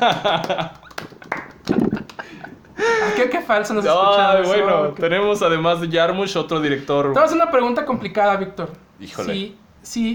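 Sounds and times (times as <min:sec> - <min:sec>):
speech: 0:00.0 - 0:00.8, 0:02.8 - 0:10.1
scattered hand claps: 0:00.0 - 0:02.3
people talking and laughing: 0:00.0 - 0:05.0.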